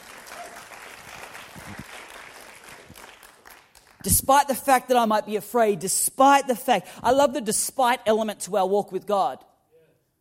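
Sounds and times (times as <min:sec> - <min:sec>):
crowd clapping: 0:00.0 - 0:04.1
speech: 0:04.0 - 0:09.5.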